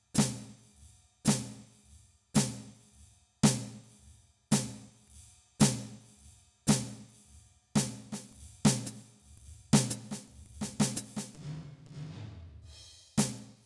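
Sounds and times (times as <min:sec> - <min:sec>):
snare drum: 0:00.2 - 0:00.6, 0:01.3 - 0:01.7, 0:02.4 - 0:02.8, 0:03.4 - 0:05.0, 0:05.6 - 0:06.1, 0:06.7 - 0:07.2, 0:07.8 - 0:13.6.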